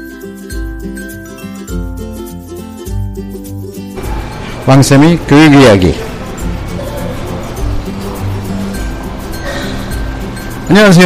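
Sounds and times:
subway station ambience: 0:04.0 - 0:11.0
speech: 0:04.7 - 0:06.1, 0:10.8 - 0:11.0.

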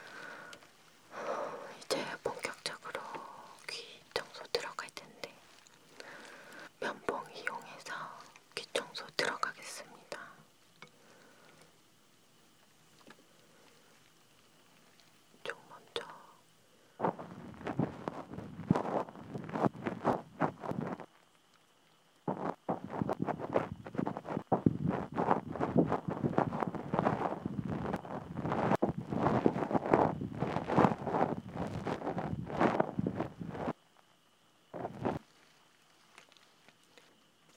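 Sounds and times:
insects chirping: 0:00.0 - 0:37.5
ear cleaning scratchy rubbing: 0:17.0 - 0:21.2, 0:22.3 - 0:33.8.

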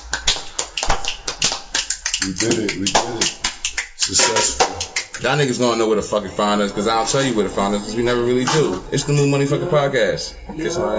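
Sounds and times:
hand clapping: 0:00.0 - 0:06.0
speech: 0:02.2 - 0:03.4, 0:04.0 - 0:10.9.

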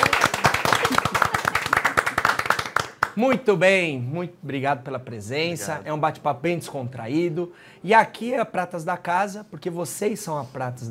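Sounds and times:
audience applause: 0:00.0 - 0:03.2
speech: 0:03.2 - 0:10.8.

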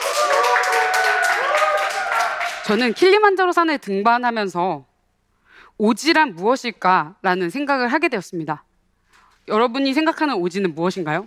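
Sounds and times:
audience clapping: 0:00.0 - 0:03.1
speech: 0:02.7 - 0:04.9, 0:05.8 - 0:08.7, 0:09.5 - 0:11.2.

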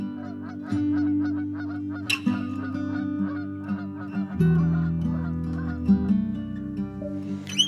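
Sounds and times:
flock of geese honking overhead: 0:00.2 - 0:07.6.

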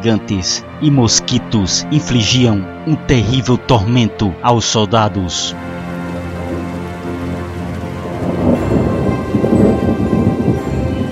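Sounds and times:
speech: 0:00.0 - 0:05.8
heavy tropical downpour: 0:05.2 - 0:11.0
low rumbling thunder: 0:05.8 - 0:11.0.

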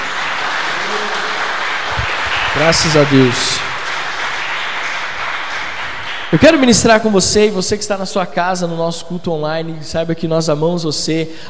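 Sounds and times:
audience applauding: 0:00.0 - 0:07.1
speech: 0:02.6 - 0:03.7, 0:06.3 - 0:11.4.

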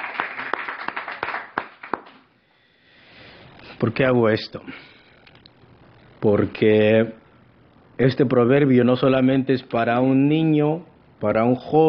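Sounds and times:
audience clapping hands: 0:00.0 - 0:02.3
speech: 0:03.8 - 0:05.0, 0:06.2 - 0:07.2, 0:08.0 - 0:11.8.

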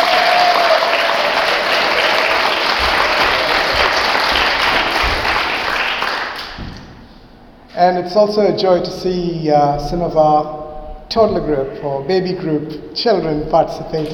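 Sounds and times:
audience applause for children: 0:00.0 - 0:06.6
speech: 0:07.8 - 0:14.1.

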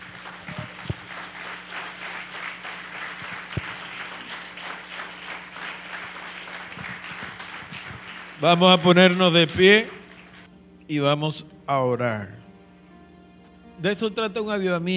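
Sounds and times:
audience applause: 0:00.0 - 0:10.5
speech: 0:08.4 - 0:10.0, 0:10.9 - 0:12.4, 0:13.8 - 0:14.9.

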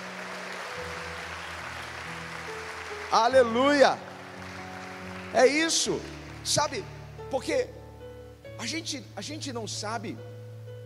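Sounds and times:
audience clapping: 0:00.0 - 0:07.0
speech: 0:03.1 - 0:04.1, 0:05.3 - 0:07.8, 0:08.6 - 0:10.3.

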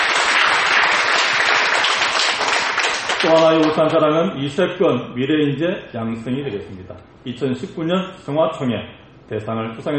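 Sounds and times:
audience applause: 0:00.0 - 0:03.8
speech: 0:03.2 - 0:09.9.

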